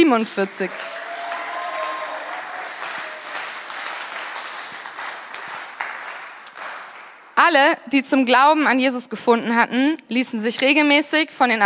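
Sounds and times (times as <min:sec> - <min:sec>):
speech: 0:00.1 - 0:01.0, 0:07.4 - 0:11.6
audience applause: 0:00.4 - 0:07.4.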